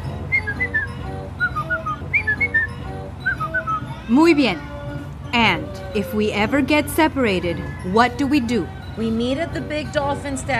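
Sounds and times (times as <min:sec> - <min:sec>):
person whistling a short melodic family signal tune: 0:00.3 - 0:04.0
speech: 0:04.1 - 0:04.7, 0:05.3 - 0:10.5.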